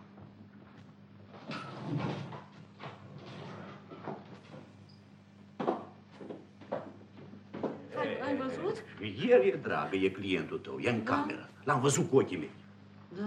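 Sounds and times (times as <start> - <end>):
door being eased open a crack: 1.5 - 4.2
speech: 8.3 - 12.6.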